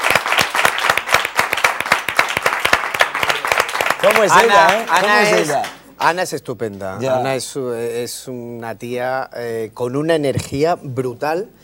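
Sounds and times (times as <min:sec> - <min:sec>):
studio audience applause: 0:00.0 - 0:05.9
speech: 0:04.0 - 0:11.6.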